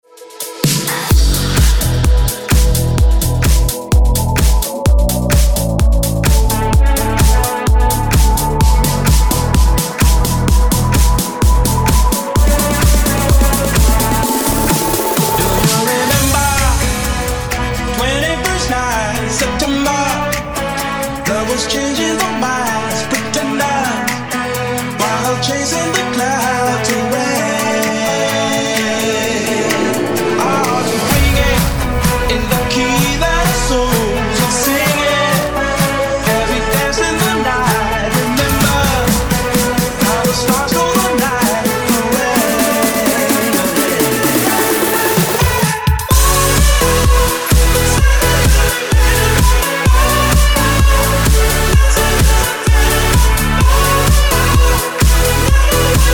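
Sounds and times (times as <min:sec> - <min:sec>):
EDM breaker beat: 0:00.2 - 0:56.1.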